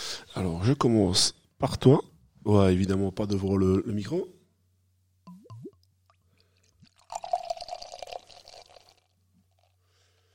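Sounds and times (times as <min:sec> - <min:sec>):
speech: 0:00.4 - 0:04.4
wine pouring into a glass: 0:05.3 - 0:09.8.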